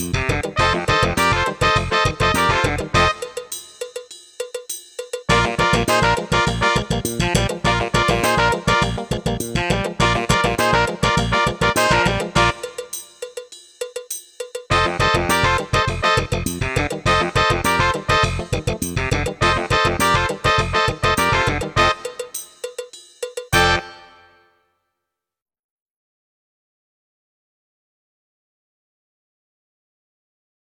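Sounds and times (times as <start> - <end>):
funk music: 0.0 - 4.0, 5.3 - 13.3, 14.7 - 22.7, 23.5 - 24.4.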